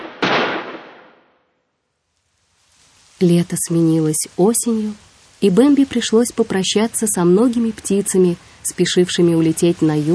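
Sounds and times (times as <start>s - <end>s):
distant gunshots: 0.0s - 1.3s
speech: 3.2s - 10.1s.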